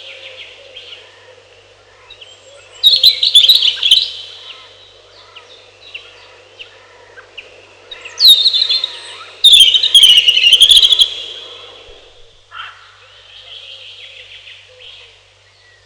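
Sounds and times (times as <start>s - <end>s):
robin: 0.0s - 7.3s, 7.9s - 15.8s
birds: 0.0s - 15.8s.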